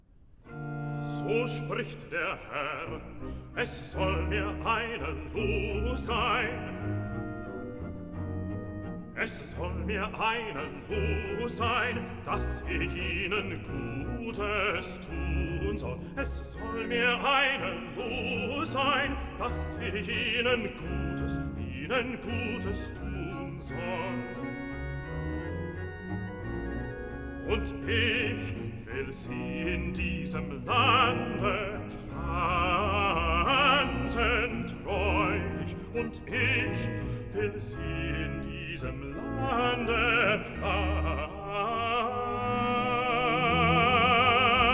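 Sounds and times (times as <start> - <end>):
bass singer performing a cantata recitative and arioso: 1.0 - 7.8, 8.5 - 44.7.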